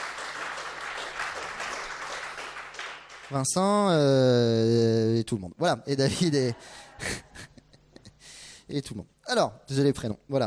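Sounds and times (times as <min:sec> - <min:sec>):
audience applause: 0:00.0 - 0:03.3
speech: 0:03.3 - 0:07.2, 0:08.7 - 0:10.4.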